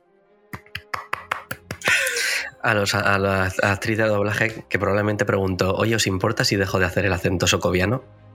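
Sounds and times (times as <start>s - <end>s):
single person clapping: 0.6s - 1.8s
speech: 2.6s - 8.2s.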